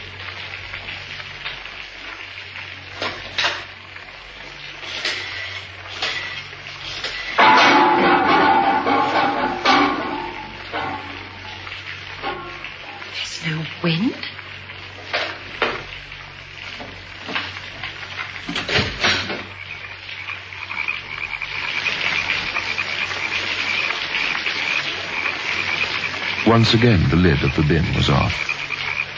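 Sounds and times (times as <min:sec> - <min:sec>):
rain: 0:00.0 - 0:29.1
speech: 0:13.8 - 0:14.3, 0:26.6 - 0:28.6.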